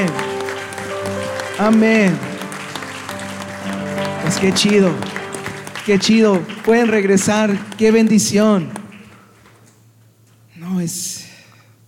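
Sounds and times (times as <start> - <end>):
sustained musical tone humming: 0.0 - 8.4
audience applause: 0.0 - 9.7
speech: 1.6 - 2.3, 4.3 - 5.1, 5.8 - 8.8, 10.8 - 11.2.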